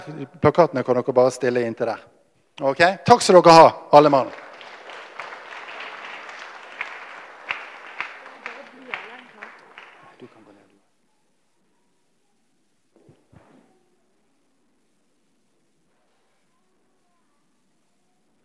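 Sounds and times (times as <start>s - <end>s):
speech: 0.0s - 4.4s
audience applause: 4.0s - 10.7s.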